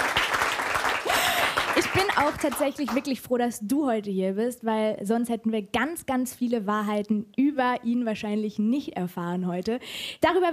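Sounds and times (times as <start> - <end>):
audience applause: 0.0 - 3.0
speech: 2.0 - 10.5.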